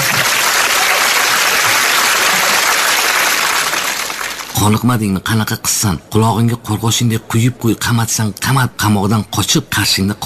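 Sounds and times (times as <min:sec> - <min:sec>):
audience applause: 0:00.0 - 0:04.6
speech: 0:04.6 - 0:10.2.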